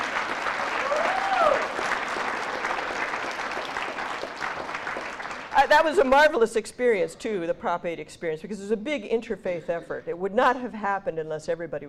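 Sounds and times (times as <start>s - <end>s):
crowd applause: 0.0s - 5.8s
speech: 5.6s - 11.8s.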